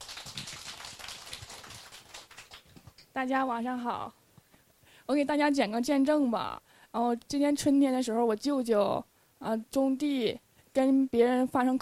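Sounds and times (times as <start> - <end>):
audience applause welcoming a speaker: 0.0 - 3.0
speech: 3.2 - 4.2, 5.1 - 11.7.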